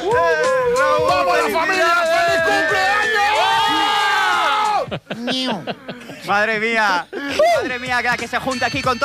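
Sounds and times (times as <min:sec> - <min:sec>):
group of friends shouting: 0:00.0 - 0:04.9
laughter: 0:04.6 - 0:07.8
speech: 0:05.0 - 0:09.0.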